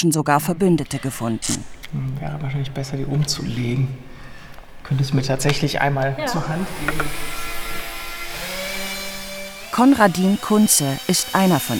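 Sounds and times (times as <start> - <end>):
speech: 0.0 - 4.1, 4.8 - 7.4, 9.8 - 11.7
power screwdriver driving a screw through a particleboard panel into a display wall: 6.6 - 11.7.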